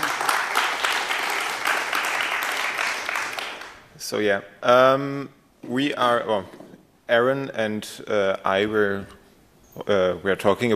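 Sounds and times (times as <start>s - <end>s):
crowd applause: 0.0s - 3.8s
speech: 4.1s - 9.2s, 9.8s - 10.7s.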